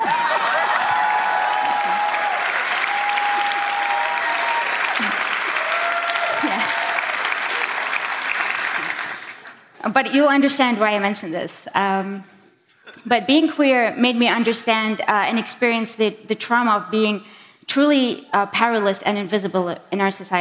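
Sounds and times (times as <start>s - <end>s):
crowd applauding: 0.0s - 9.7s
speech: 9.8s - 12.4s, 13.0s - 20.3s.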